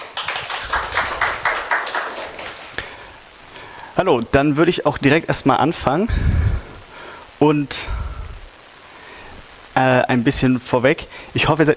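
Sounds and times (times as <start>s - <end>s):
audience applause: 0.0s - 3.2s
speech: 4.0s - 6.4s, 7.4s - 8.0s, 9.8s - 11.7s.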